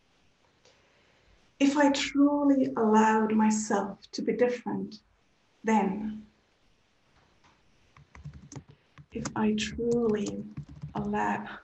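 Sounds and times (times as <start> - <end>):
speech: 1.6 - 6.3, 9.2 - 11.6
computer keyboard typing: 7.9 - 11.4.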